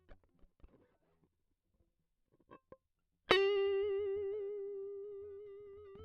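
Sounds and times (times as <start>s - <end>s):
guitar solo line: 3.3s - 6.0s.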